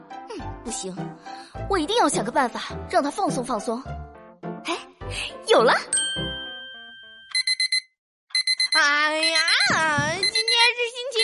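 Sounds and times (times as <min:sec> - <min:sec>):
speech: 0:00.7 - 0:04.0, 0:04.7 - 0:06.3
alarm clock ringing: 0:06.0 - 0:11.2.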